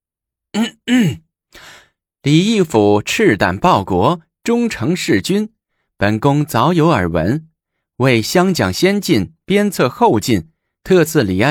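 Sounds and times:
short cough: 0:00.6 - 0:01.3
throat clearing: 0:00.6 - 0:01.3
speech: 0:00.6 - 0:11.4.

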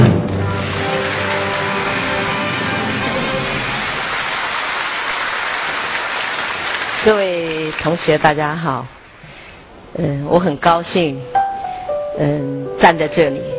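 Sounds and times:
audience applause: 0:00.0 - 0:08.4
speech: 0:07.1 - 0:09.0, 0:10.0 - 0:11.4, 0:12.2 - 0:13.5.

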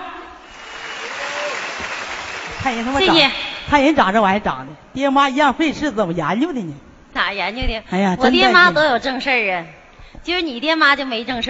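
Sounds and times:
audience applause: 0:00.4 - 0:03.6
speech: 0:02.6 - 0:11.4.

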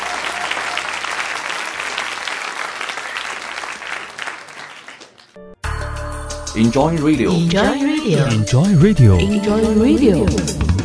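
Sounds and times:
audience applause: 0:00.0 - 0:05.4
speech: 0:06.6 - 0:10.7.

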